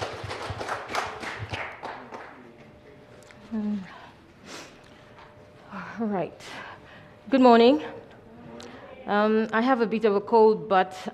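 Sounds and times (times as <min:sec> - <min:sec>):
audience applause: 0:00.0 - 0:02.7
speech: 0:06.0 - 0:06.7, 0:07.3 - 0:08.0, 0:09.1 - 0:11.1.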